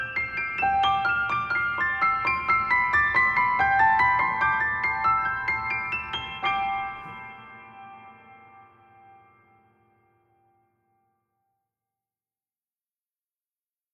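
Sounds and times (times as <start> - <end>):
piano: 0.0 - 11.0.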